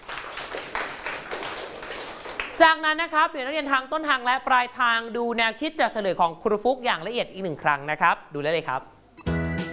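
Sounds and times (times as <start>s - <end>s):
classroom students clapping for a classmate: 0.0s - 2.6s
speech: 2.6s - 8.9s.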